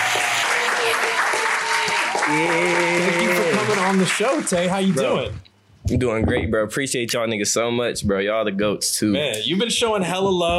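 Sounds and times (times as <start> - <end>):
studio audience clapping: 0.0 - 5.5
speech: 2.3 - 3.2, 3.9 - 10.5.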